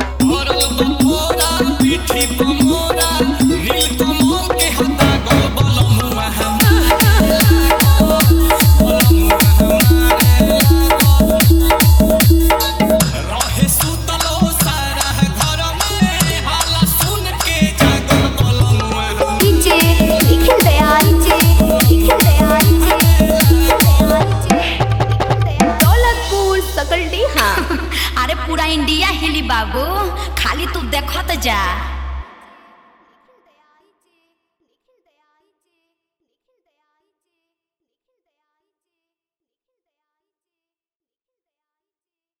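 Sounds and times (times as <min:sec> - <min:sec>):
hard bass music: 0:00.2 - 0:32.3.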